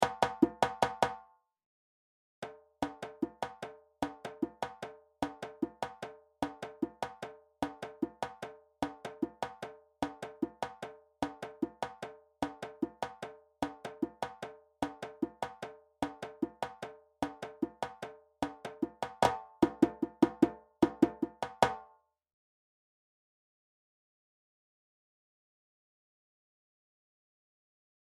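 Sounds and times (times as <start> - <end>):
djembe drumming: 0.0 - 1.2, 2.4 - 21.9.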